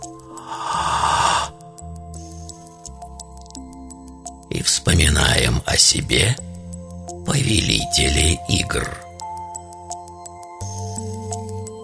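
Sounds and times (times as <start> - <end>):
deep inhale during a guided meditation: 0.1 - 1.6
speech: 4.6 - 6.5, 7.3 - 9.0.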